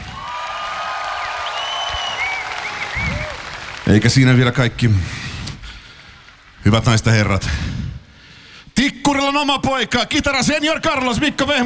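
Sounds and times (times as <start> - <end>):
concert audience applauding a guitarist's introduction: 0.0 - 4.9
speech: 3.9 - 5.2, 6.6 - 7.8, 8.8 - 11.6.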